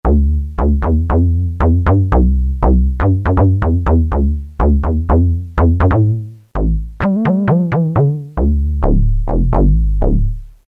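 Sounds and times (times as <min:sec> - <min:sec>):
comic drum sounds on Roland M-DC1: 0:00.0 - 0:10.6.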